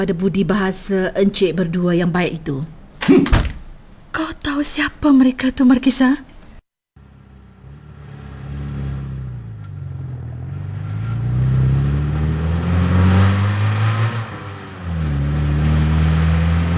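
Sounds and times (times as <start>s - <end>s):
speech: 0.0s - 3.5s, 4.2s - 6.3s
car driving fast: 7.5s - 16.7s.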